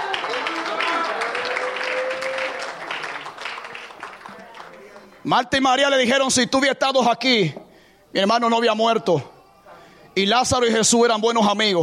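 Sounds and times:
audience applauding: 0.0 - 5.2
speech: 5.2 - 9.3, 10.2 - 11.8.

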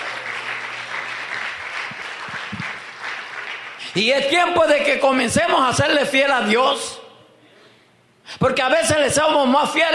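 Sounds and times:
audience applause: 0.0 - 4.0
speech: 3.9 - 7.0, 8.4 - 9.9.

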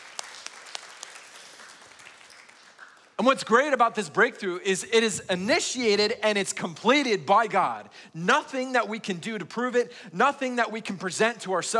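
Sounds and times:
audience applause: 0.0 - 3.2
speech: 3.2 - 11.7.

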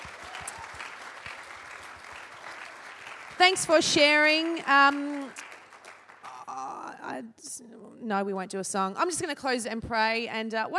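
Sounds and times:
audience applause: 0.0 - 6.7
speech: 3.4 - 5.4, 7.2 - 10.7.

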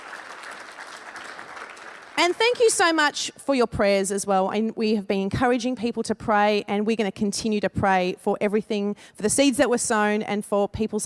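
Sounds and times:
audience applause: 0.0 - 2.4
speech: 2.2 - 11.0.

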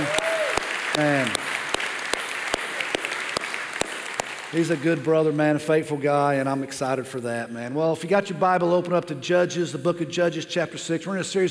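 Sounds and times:
louder sharper clap at an even regular beat: 0.0 - 5.2
audience applause: 0.0 - 5.4
speech: 1.0 - 1.4, 4.5 - 11.4.

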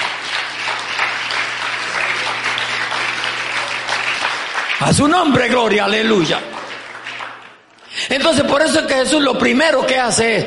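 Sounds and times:
crowd applause: 0.0 - 8.0
speech: 4.8 - 6.5, 8.1 - 10.4.

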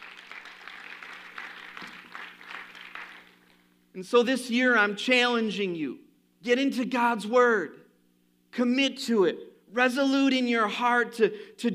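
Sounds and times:
people clapping: 0.0 - 3.6
speech: 4.0 - 7.8, 8.6 - 11.7.

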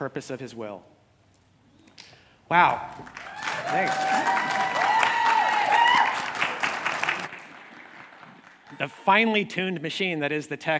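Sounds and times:
speech: 0.0 - 1.0, 2.5 - 4.6, 8.8 - 10.7
audience applause: 2.9 - 9.0.

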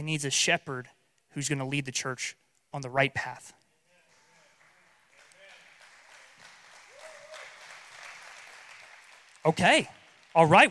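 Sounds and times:
speech: 0.0 - 3.6, 9.4 - 10.7
audience applause: 4.2 - 10.7.

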